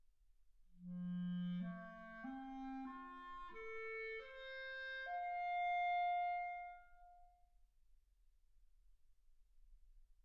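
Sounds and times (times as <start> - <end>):
clarinet: 0.8 - 7.4.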